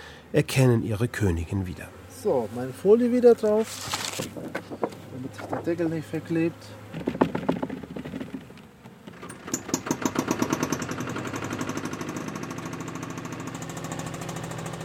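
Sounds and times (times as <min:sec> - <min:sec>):
speech: 0:00.3 - 0:07.2
Swiss mountain tractor engine starting and running: 0:07.0 - 0:14.8.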